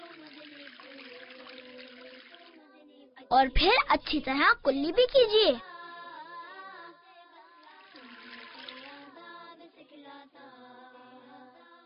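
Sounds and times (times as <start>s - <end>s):
tap water running while washing hands: 0.0s - 2.6s, 7.6s - 9.1s
speech: 3.3s - 5.7s.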